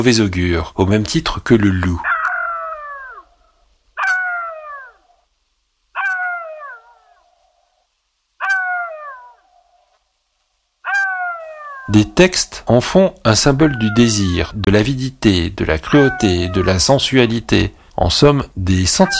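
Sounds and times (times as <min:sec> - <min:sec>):
speech: 0:00.0 - 0:02.2, 0:11.9 - 0:19.1
jackal howling: 0:02.0 - 0:05.3, 0:06.0 - 0:07.7, 0:08.4 - 0:10.0, 0:10.8 - 0:12.0, 0:13.4 - 0:14.7, 0:15.8 - 0:17.1, 0:18.9 - 0:19.1.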